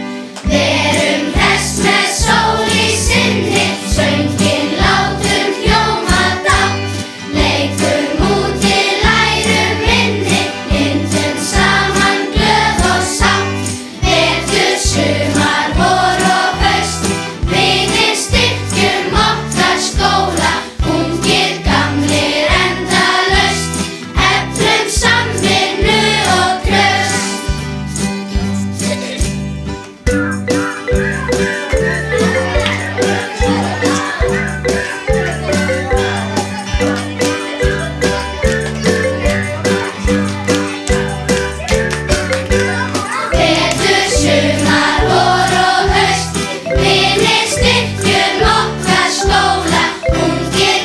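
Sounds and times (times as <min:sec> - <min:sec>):
school song: 0:00.1 - 0:50.8
laughter: 0:00.5 - 0:13.6, 0:30.5 - 0:50.7.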